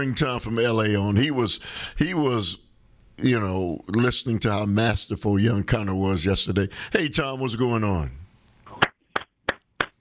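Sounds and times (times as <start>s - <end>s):
speech: 0.0s - 2.6s, 3.2s - 8.2s
single person clapping hands: 8.7s - 9.9s.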